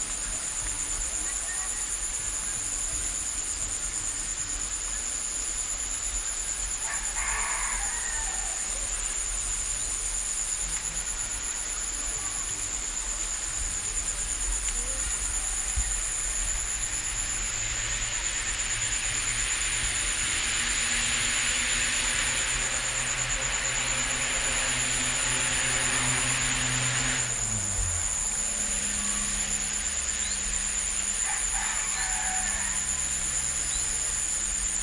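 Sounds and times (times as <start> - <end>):
crickets trilling: 0.0 - 34.8
rooster crowing: 6.8 - 9.0, 31.1 - 33.5.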